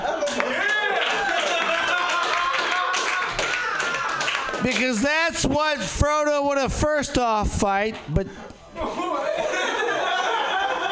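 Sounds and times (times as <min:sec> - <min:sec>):
laughter: 0:00.0 - 0:04.6, 0:08.8 - 0:10.8
applause: 0:00.2 - 0:05.0
speech: 0:04.6 - 0:09.7.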